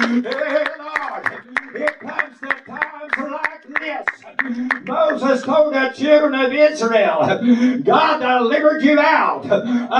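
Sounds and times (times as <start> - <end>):
audience clapping hands: 0.0 - 5.7
speech: 0.1 - 0.6, 5.3 - 9.9.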